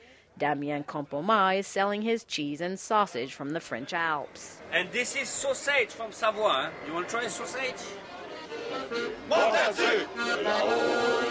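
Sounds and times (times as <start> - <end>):
speech: 0.4 - 8.1, 8.9 - 11.3
crowd singing nostalgic songs at the Vendange Festival: 7.2 - 11.3.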